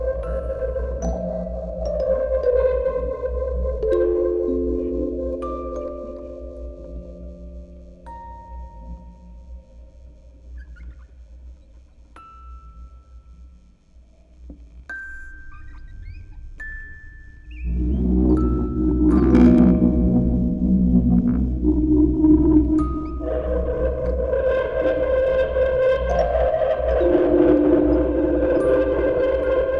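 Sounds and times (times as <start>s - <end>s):
music box quartet: 0.0s - 10.1s, 14.9s - 29.7s
vocoder: 0.0s - 10.9s, 17.6s - 29.7s
tape recording: 0.0s - 29.7s.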